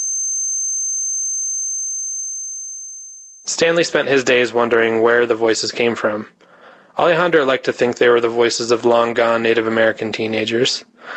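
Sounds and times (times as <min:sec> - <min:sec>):
high-pitched tinnitus ringing tone: 0:00.0 - 0:03.5
speech: 0:03.4 - 0:11.1.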